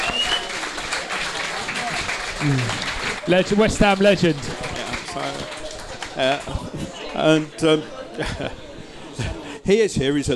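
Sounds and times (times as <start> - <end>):
faint whistles: 0.0 - 0.6
round of applause: 0.0 - 7.6
laughter: 1.1 - 9.7
speech: 2.4 - 4.6, 5.2 - 5.6, 6.2 - 8.6, 9.2 - 10.3.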